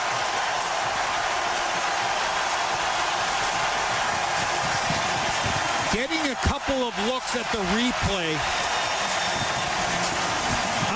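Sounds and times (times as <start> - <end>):
hockey arena crowd roaring: 0.0 - 10.9
speech: 6.8 - 8.8.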